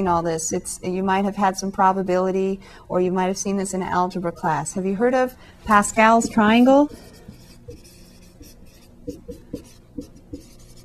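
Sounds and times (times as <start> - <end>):
speech: 0.0 - 7.1
writing on a board during a math lecture: 6.8 - 10.8.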